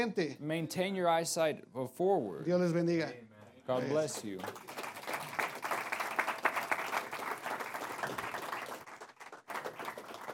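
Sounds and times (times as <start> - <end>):
speech: 0.0 - 4.8
audience applause: 4.0 - 10.3.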